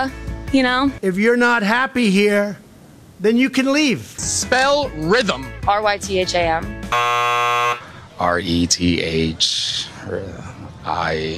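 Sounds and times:
speech: 0.0 - 2.6, 3.2 - 11.3
loud flat electronic buzzer: 6.9 - 7.9.

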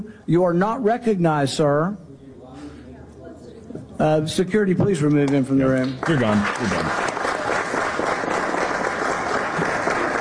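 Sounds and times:
speech: 0.0 - 2.0, 4.0 - 7.1
audience applause in hearing room: 5.8 - 10.2.

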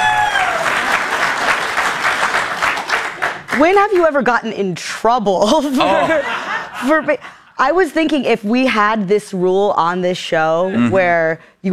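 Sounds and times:
group applauding: 0.0 - 4.2
speech: 3.6 - 11.7
laughter: 5.6 - 7.2.

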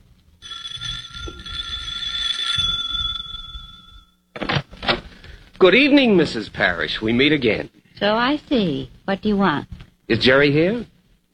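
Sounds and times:
doorbell ringing: 0.4 - 4.2
speech: 5.6 - 11.3.

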